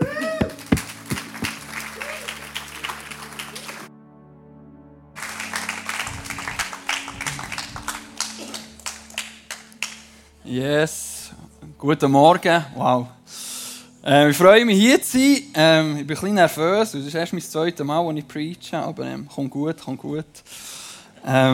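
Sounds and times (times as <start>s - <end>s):
audience applause: 0.0s - 3.9s, 5.2s - 10.2s
speech: 10.5s - 11.1s, 11.8s - 13.2s, 14.0s - 21.5s.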